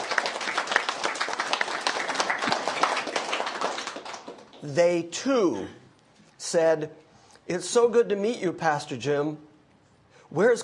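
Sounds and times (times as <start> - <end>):
crowd applauding: 0.0 - 4.8
speech: 4.6 - 5.8, 6.4 - 9.5, 10.3 - 10.6.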